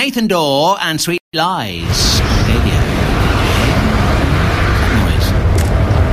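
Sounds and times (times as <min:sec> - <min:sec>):
speech: 0:00.2 - 0:02.9
jet plane coming in: 0:01.8 - 0:06.0.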